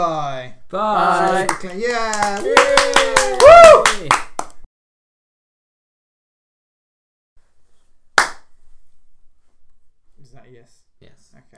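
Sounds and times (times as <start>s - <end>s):
speech: 0.0s - 4.2s
hand clapping: 1.2s - 4.6s, 8.2s - 8.5s.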